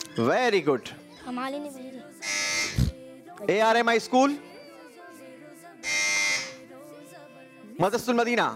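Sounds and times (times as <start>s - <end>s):
speech: 0.2s - 2.8s, 3.4s - 4.5s, 7.8s - 8.5s
quiz competition buzzer: 2.2s - 2.9s, 5.8s - 6.6s.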